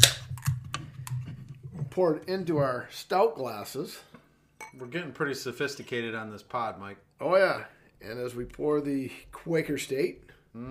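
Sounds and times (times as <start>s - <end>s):
12 ounce beer can cracking open: 0.0s - 1.2s
speech: 2.0s - 4.1s, 4.8s - 10.7s.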